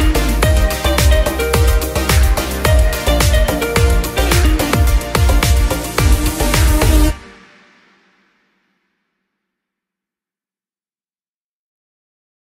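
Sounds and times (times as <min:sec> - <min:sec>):
instrumental music: 0:00.0 - 0:07.9.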